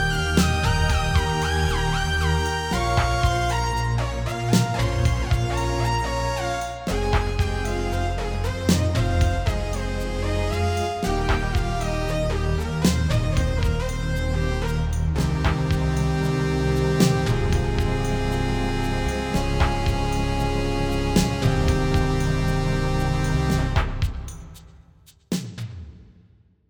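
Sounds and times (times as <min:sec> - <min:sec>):
Arp Quadra synthesizer bass strings lead: 0:00.0 - 0:24.4.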